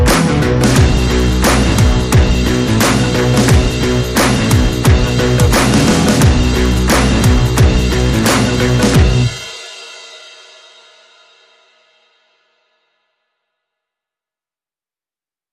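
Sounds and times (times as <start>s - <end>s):
instrumental backing track without lead or vocals: 0.0s - 9.6s.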